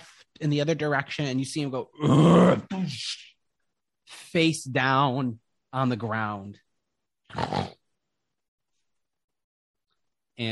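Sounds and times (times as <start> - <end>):
speech: 0.4 - 3.3, 4.1 - 6.6
voice imitating loud snoring of a giant: 2.0 - 2.6, 7.3 - 7.8.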